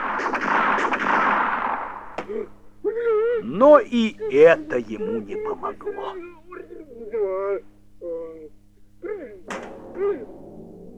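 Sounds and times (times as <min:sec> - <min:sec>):
pistol shots fired repeatedly: 0:00.0 - 0:02.5
laughter: 0:02.3 - 0:08.4
speech: 0:03.4 - 0:08.2.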